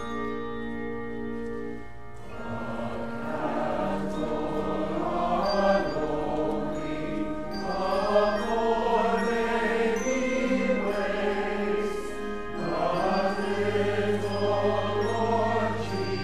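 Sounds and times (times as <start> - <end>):
handbells ringing: 0.0 - 16.2
mass choir singing: 2.2 - 16.2.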